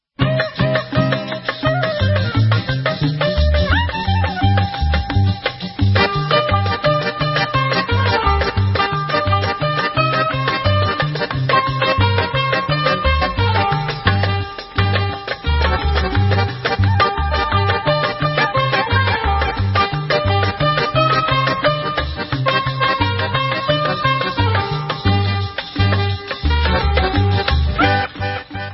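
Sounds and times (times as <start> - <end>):
instrumental music: 0.2 - 28.7.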